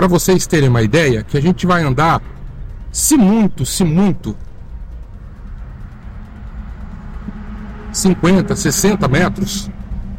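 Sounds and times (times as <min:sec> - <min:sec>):
speech: 0:00.0 - 0:04.4, 0:07.9 - 0:09.8
car driving slowly with engine and tyre rumble: 0:00.0 - 0:10.1.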